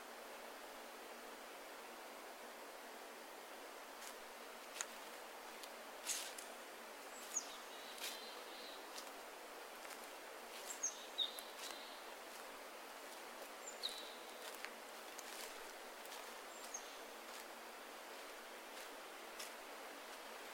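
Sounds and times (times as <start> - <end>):
forest wind and rustling trees: 0.0 - 20.5
dry crackles: 4.0 - 6.6, 7.2 - 9.2, 9.8 - 17.5.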